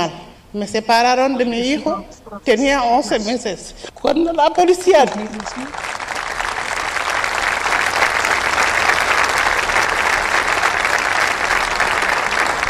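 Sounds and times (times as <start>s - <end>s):
speech: 0.0s - 6.0s
large audience applauding: 4.7s - 12.6s.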